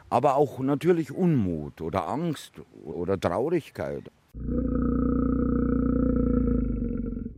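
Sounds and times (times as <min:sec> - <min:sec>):
speech: 0:00.1 - 0:04.9
bear growling: 0:04.4 - 0:07.3.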